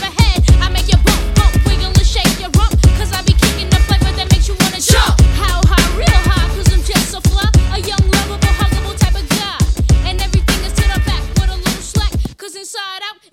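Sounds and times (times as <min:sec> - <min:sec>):
clean drums: 0:00.0 - 0:12.4.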